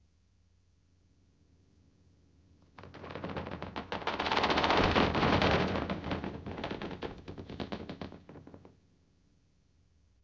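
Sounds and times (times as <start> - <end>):
scratching: 2.8 - 8.7.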